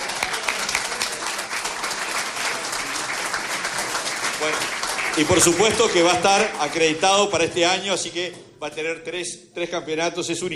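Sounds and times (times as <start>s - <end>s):
crowd applause: 0.0s - 7.3s
speech: 4.4s - 10.5s.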